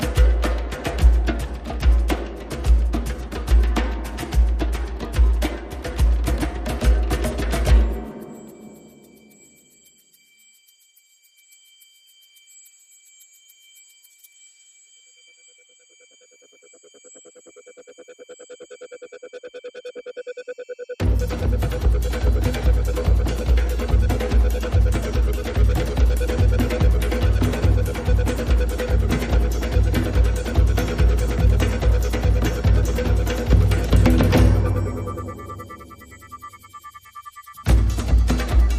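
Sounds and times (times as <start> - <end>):
percussion: 0.0 - 38.7
electronic pulses: 7.7 - 38.7.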